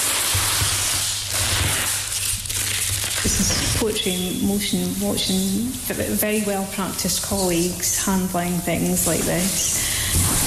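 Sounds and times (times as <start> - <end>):
paper tape peeled while unwrapping a painting: 0.0 - 4.0, 9.4 - 10.4
speech: 3.2 - 10.4.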